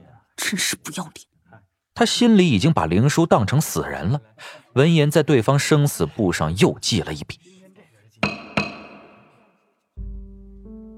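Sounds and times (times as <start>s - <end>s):
speech: 0.5s - 1.3s, 2.0s - 7.6s
small hammer striking a jade chime: 8.2s - 9.4s.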